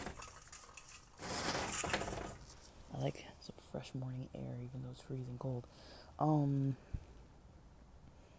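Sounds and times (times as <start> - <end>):
window being opened: 1.2 - 2.6
speech: 3.0 - 7.0.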